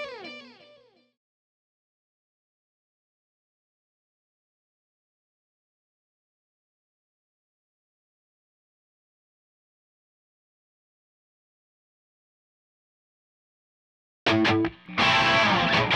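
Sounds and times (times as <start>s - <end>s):
guitar in C: 0.0s - 0.8s, 14.3s - 15.9s.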